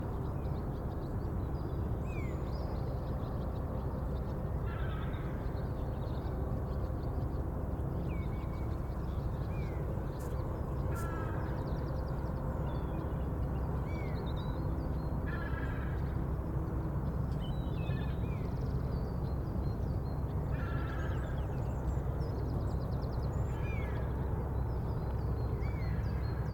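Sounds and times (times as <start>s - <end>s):
calm coastal waterfront morning ambience: 0.0s - 26.4s.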